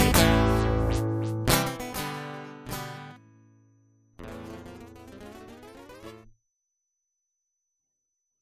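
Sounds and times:
instrumental music: 0:00.0 - 0:03.4, 0:04.2 - 0:06.3.

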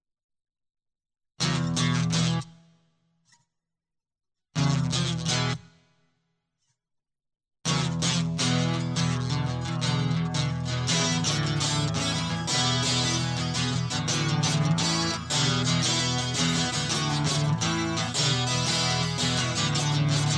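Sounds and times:
guitar loop: 0:01.4 - 0:02.4, 0:04.6 - 0:05.6, 0:07.7 - 0:20.3.

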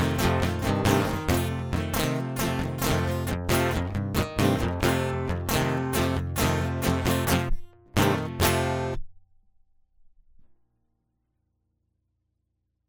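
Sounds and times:
instrumental music: 0:00.0 - 0:09.0.

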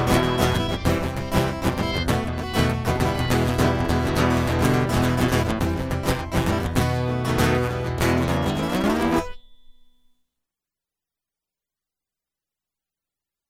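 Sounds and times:
interlude music: 0:00.0 - 0:09.8.

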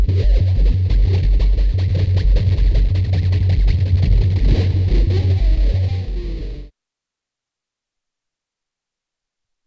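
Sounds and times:
alternative rock music: 0:00.0 - 0:06.7.

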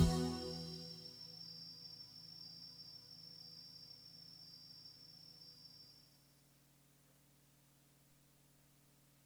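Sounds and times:
prelude: 0:00.0 - 0:00.9.

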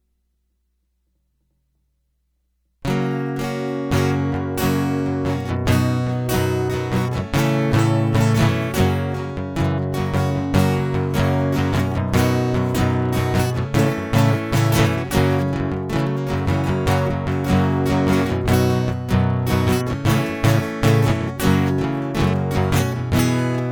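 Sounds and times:
guitar loop: 0:02.8 - 0:23.7.

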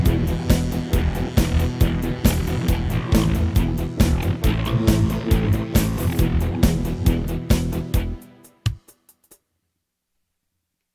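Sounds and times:
alternative rock music: 0:00.0 - 0:08.8.

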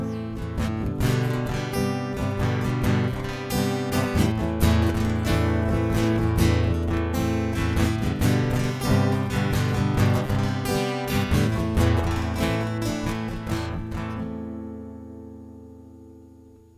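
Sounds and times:
guitar interlude: 0:00.0 - 0:16.7.

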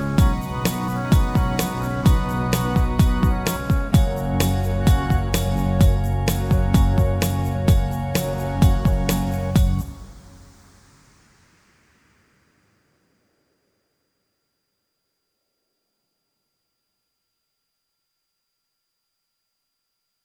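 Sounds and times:
music interlude on keys: 0:00.0 - 0:09.8.

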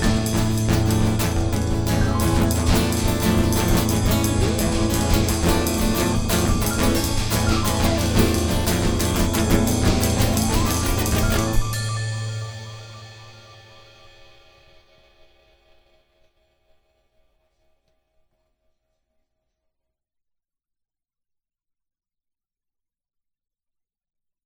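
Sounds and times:
instrumental music: 0:00.0 - 0:14.4.

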